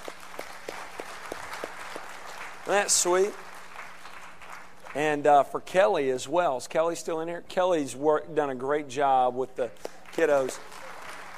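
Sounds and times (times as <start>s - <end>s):
faint audience applause for children: 0.0s - 5.3s, 9.8s - 11.3s
speech: 2.7s - 3.4s, 5.0s - 10.6s.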